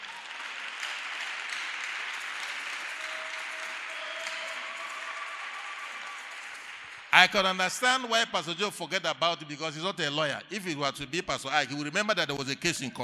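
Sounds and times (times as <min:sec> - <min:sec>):
audience clapping at a church gathering: 0:00.0 - 0:08.6
speech: 0:07.2 - 0:13.0.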